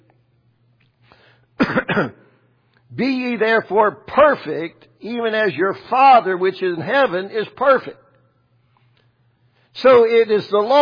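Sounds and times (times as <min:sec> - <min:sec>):
person coughing: 0:01.6 - 0:02.3
throat clearing: 0:01.6 - 0:02.3
speech: 0:01.7 - 0:02.2, 0:02.9 - 0:08.0, 0:09.8 - 0:10.7.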